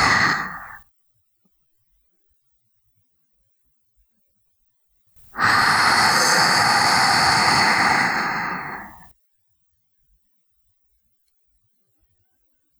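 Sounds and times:
ear licking: 0:00.0 - 0:00.8, 0:05.4 - 0:09.0.

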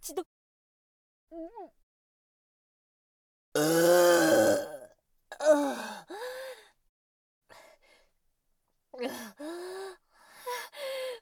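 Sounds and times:
voiced burps: 0:03.6 - 0:05.0.

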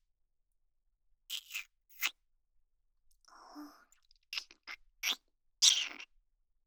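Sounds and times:
ASMR kissing sounds: 0:01.3 - 0:02.2, 0:04.3 - 0:06.1.

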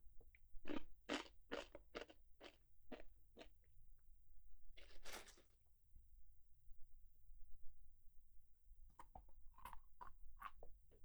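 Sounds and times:
chewing Japanese rice crackers senbei: 0:00.7 - 0:03.5, 0:04.8 - 0:05.5, 0:09.0 - 0:10.8.

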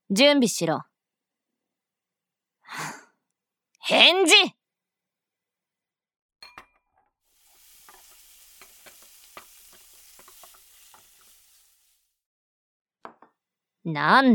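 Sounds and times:
speech: 0:00.1 - 0:00.9, 0:03.9 - 0:04.6, 0:13.8 - 0:14.3
meat sizzling in a frying pan: 0:07.3 - 0:12.2.

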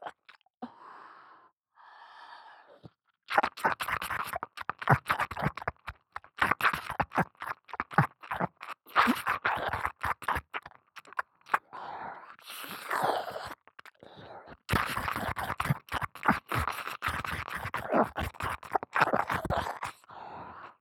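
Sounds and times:
intense ear licking on the left ear: 0:03.3 - 0:11.6, 0:14.7 - 0:20.0.

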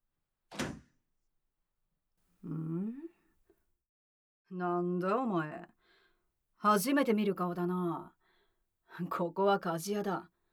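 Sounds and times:
blacksmith's shop door latch thunk: 0:00.5 - 0:00.8
blacksmith's shop door creaking open: 0:00.5 - 0:00.9
speech: 0:04.5 - 0:05.7, 0:06.6 - 0:08.2, 0:08.9 - 0:10.3.

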